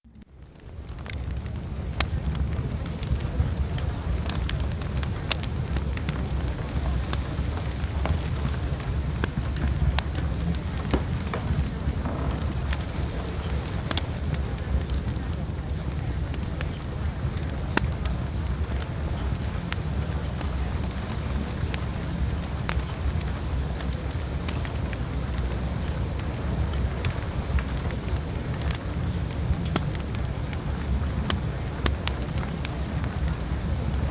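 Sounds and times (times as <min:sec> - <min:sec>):
fireplace: 0:00.4 - 0:34.1.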